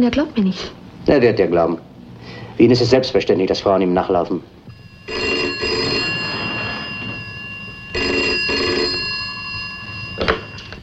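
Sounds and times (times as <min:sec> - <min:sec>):
speech: 0:00.0 - 0:05.3
telephone ringing: 0:04.6 - 0:10.8.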